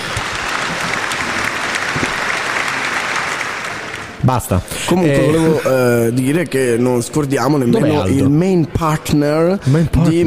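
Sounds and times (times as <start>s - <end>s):
applause: 0.0s - 4.3s
speech: 4.3s - 10.2s
laughter: 9.6s - 10.2s.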